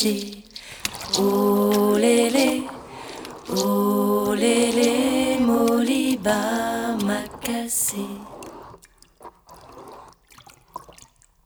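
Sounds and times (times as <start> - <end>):
speech: 0.0 - 0.5, 1.1 - 2.7, 3.5 - 8.3
water filling a jug: 0.0 - 11.4.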